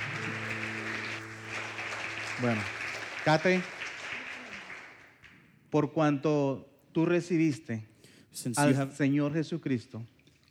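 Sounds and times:
low sustained keyboard chord: 0:00.0 - 0:03.7
audience applause: 0:00.0 - 0:05.3
speech: 0:02.4 - 0:03.8, 0:05.7 - 0:10.2.

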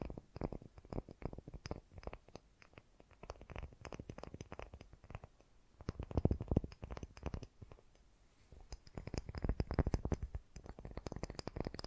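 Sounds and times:
fast gentle tapping: 0:00.0 - 0:08.0, 0:08.6 - 0:11.8
faint hiss: 0:00.0 - 0:11.8.

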